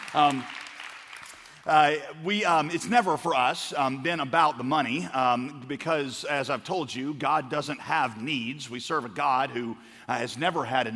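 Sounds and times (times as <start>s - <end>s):
audience applause: 0.0s - 1.6s
speech: 0.1s - 0.6s, 1.6s - 10.9s.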